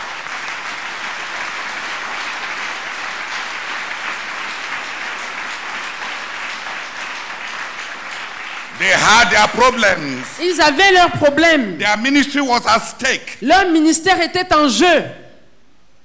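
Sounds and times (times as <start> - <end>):
audience applause: 0.0 - 11.0
speech: 8.8 - 15.2.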